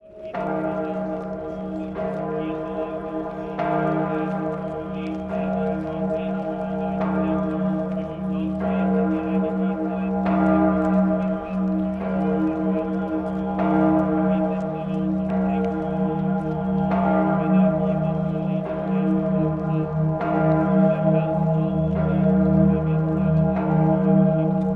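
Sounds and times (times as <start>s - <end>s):
Salzburg bells ringing: 0.1s - 24.6s.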